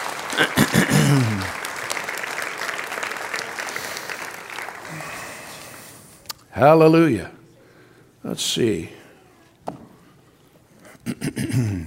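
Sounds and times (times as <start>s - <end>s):
audience applause: 0.0s - 6.1s
speech: 0.4s - 1.6s, 6.6s - 7.4s, 8.2s - 9.0s.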